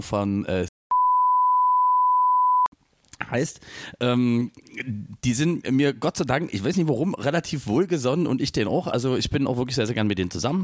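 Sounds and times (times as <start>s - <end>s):
speech: 0.0s - 0.7s, 3.3s - 10.6s
censor bleep tone: 0.9s - 2.7s.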